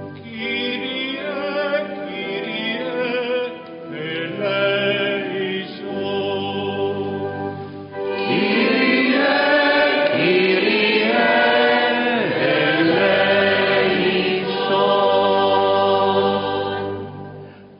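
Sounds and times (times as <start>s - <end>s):
choir singing: 0.2s - 17.5s.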